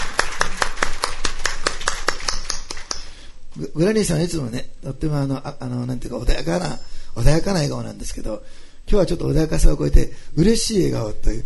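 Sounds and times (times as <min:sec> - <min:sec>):
welcoming applause from audience: 0:00.0 - 0:03.1
speech: 0:03.6 - 0:11.4.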